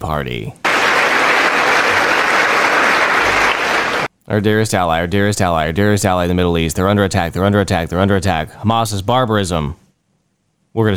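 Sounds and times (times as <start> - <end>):
speech: 0.0 - 0.6, 4.3 - 9.8, 10.8 - 10.9
loud sustained applause from a large crowd: 0.6 - 4.1.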